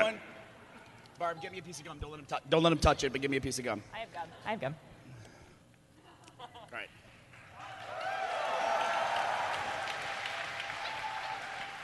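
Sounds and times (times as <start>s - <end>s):
speech: 1.2s - 4.9s, 6.7s - 7.0s
audience applause: 7.6s - 11.8s.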